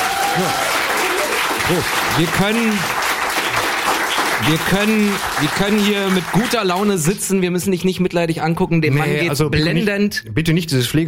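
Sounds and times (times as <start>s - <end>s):
voices calling out and whooping: 0.0s - 1.4s
audience applause: 0.0s - 7.3s
speech: 0.4s - 0.6s, 1.7s - 3.0s, 4.4s - 11.0s.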